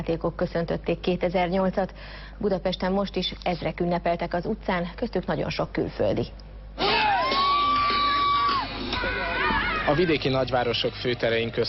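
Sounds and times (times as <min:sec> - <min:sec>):
speech: 0:00.0 - 0:06.9, 0:09.9 - 0:11.6
person whooping: 0:06.8 - 0:10.1
people shouting and yelling: 0:06.8 - 0:10.3
crowd cheering at New Year street celebration: 0:06.8 - 0:10.8.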